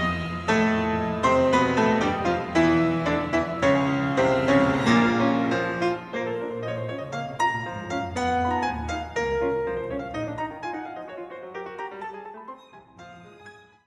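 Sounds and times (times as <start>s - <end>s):
concert piano: 0.0s - 13.8s.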